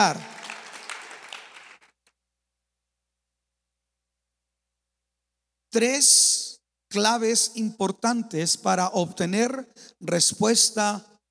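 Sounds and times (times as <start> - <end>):
speech: 0.0 - 0.3, 5.7 - 11.1
audience applause: 0.0 - 1.9.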